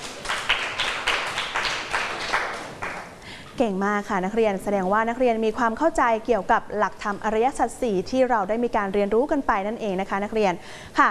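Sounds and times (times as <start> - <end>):
group of students clapping: 0.0 - 3.2
speech: 3.6 - 11.0.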